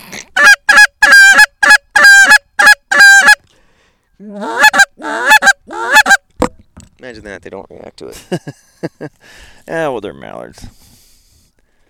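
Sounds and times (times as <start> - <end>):
goose call honking: 0.4 - 3.4, 4.3 - 6.2
speech: 7.2 - 10.8.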